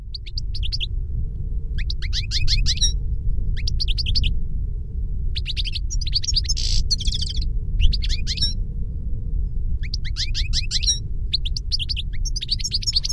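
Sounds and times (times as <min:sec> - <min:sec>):
bird chirping: 0:00.0 - 0:00.9, 0:01.8 - 0:03.0, 0:03.6 - 0:04.3, 0:05.4 - 0:08.6, 0:09.8 - 0:13.1
low rumble: 0:00.0 - 0:13.1.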